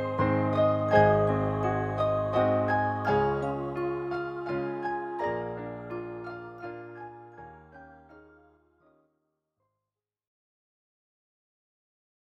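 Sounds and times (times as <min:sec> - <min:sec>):
waltz: 0:00.0 - 0:08.3.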